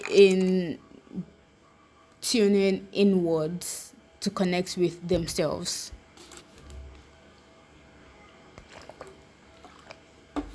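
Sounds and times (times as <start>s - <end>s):
speech: 0.1s - 1.3s, 2.2s - 6.0s
person drinking water: 8.6s - 10.5s.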